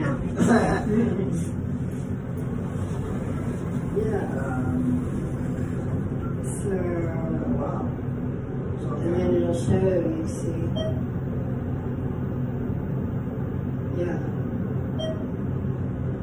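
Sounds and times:
elevator low mechanical rumble: 0.0 - 16.2
laughter: 0.2 - 1.5
elevator beeping as it passes floors: 5.5 - 8.8, 10.5 - 16.2.

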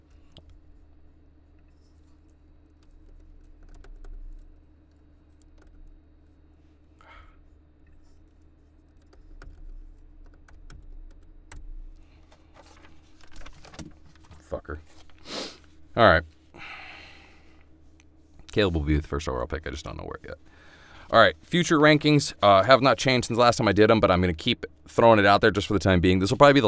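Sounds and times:
faint typing of a reply message: 0.0 - 15.2
low steady hum: 0.0 - 26.6
speech: 16.0 - 16.3, 18.6 - 26.6.

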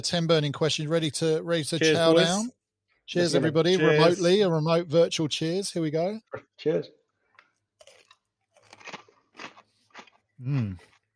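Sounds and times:
speech: 0.0 - 7.0, 10.4 - 10.9
someone crunching on stale crackers: 7.2 - 11.1
person murmuring: 10.4 - 10.8.

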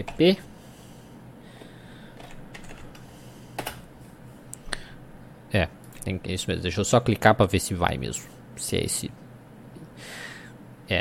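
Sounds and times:
speech: 0.0 - 0.5, 5.5 - 9.2
computer keyboard typing a web address: 2.2 - 3.0.

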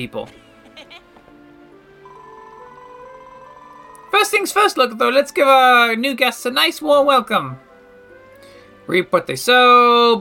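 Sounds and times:
speech: 0.0 - 0.9, 4.2 - 7.6, 8.9 - 10.1
bell ringing: 2.0 - 4.4.

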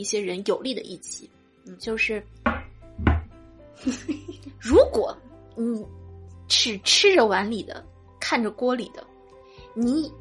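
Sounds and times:
speech: 0.0 - 3.2, 3.8 - 9.1, 9.8 - 10.2
knocking on a table: 2.5 - 3.4.

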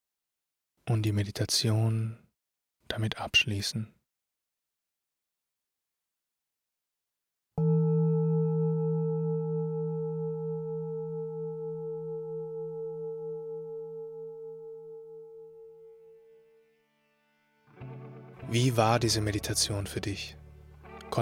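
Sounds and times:
speech: 0.9 - 2.2, 2.9 - 4.0, 7.6 - 7.9, 18.5 - 20.4
gong being struck: 7.6 - 15.7.

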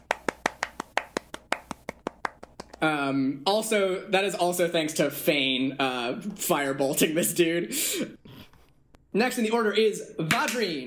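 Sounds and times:
hand claps: 0.0 - 2.9, 10.3 - 10.7
speech: 2.8 - 8.2, 9.2 - 10.8.

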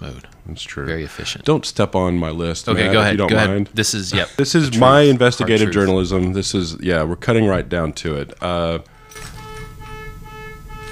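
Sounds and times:
speech: 0.0 - 9.3
car alarm from key fob panic button: 9.0 - 10.9.

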